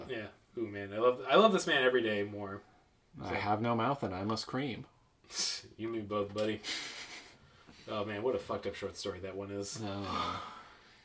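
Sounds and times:
speech: 0.1 - 7.0, 7.9 - 10.5
huge yawn: 9.8 - 10.8.

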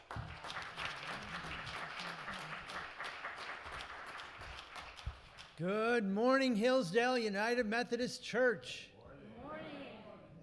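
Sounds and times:
audience applause: 0.0 - 5.5
speech: 5.6 - 8.9.

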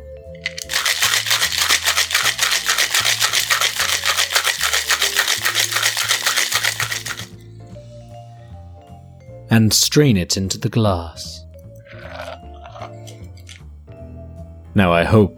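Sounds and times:
soft music: 0.0 - 15.3
cocktail shaker shaken vigorously, rattling ice: 0.4 - 7.4
speech: 9.5 - 11.4, 14.8 - 15.3.

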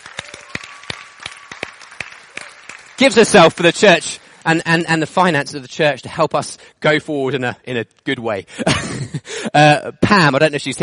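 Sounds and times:
group clapping: 0.0 - 4.5
speech: 3.0 - 8.9, 9.5 - 10.8.

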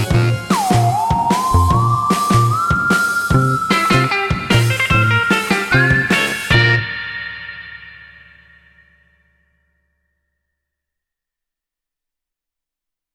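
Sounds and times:
scary music: 0.2 - 9.0.

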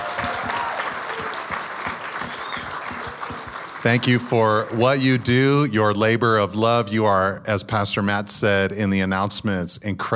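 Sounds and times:
audience applause: 0.0 - 5.7
speech: 3.8 - 10.1.

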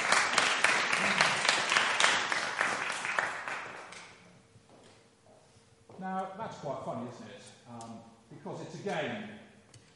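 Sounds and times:
audience applause: 0.0 - 4.0
speech: 6.5 - 9.4.

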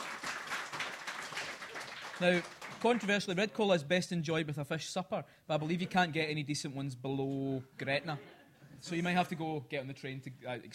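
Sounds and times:
audience applause: 0.0 - 3.2
speech: 2.2 - 10.7.

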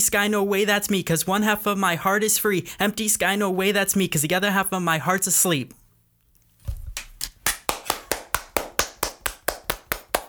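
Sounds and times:
speech: 0.0 - 5.8
hands clapping applause: 7.0 - 10.2.

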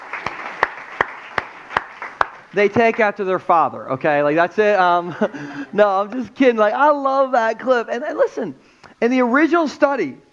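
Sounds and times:
audience clapping: 0.0 - 3.3
speech: 2.6 - 10.2.

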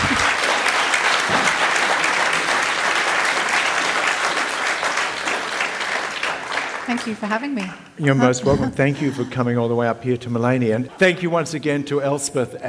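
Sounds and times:
audience applause at the close of an evening conversation event: 0.0 - 7.7
speech: 6.9 - 12.6.

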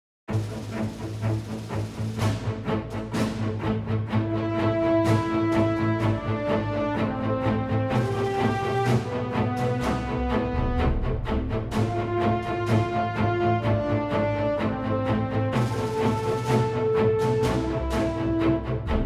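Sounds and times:
classical music: 0.3 - 19.0.

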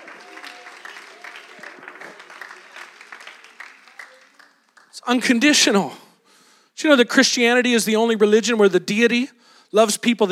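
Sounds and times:
audience clapping: 0.0 - 5.4
speech: 5.0 - 6.0, 6.8 - 10.3.

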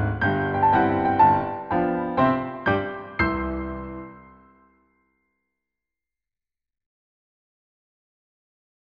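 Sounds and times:
grands battements ballet class music in four-four time: 0.0 - 4.8.

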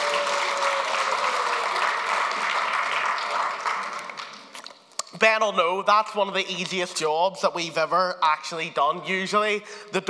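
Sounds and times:
applause: 0.0 - 4.6
speech: 5.2 - 10.0.

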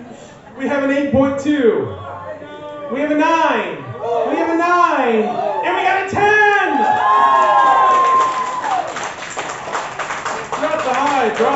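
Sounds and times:
speech: 0.6 - 2.0, 2.9 - 6.3
crowd cheering and applauding: 6.7 - 11.5
high whoop or whistle: 6.8 - 8.9.

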